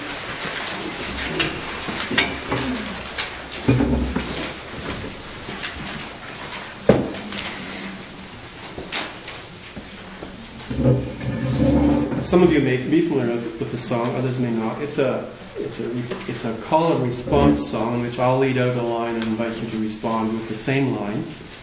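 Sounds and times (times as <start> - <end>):
chair being dragged and set down: 0.0 - 9.2, 9.8 - 12.8
speech: 12.3 - 21.6.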